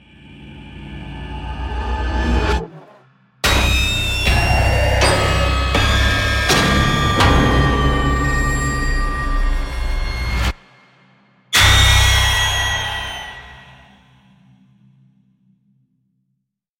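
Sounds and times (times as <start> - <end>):
horror jumpscare sound effects: 2.3 - 10.6, 11.6 - 14.2.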